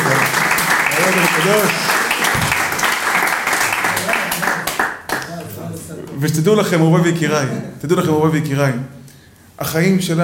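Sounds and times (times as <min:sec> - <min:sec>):
audience applause: 0:00.0 - 0:05.2
speech: 0:01.1 - 0:01.9, 0:06.2 - 0:09.0, 0:09.6 - 0:10.2.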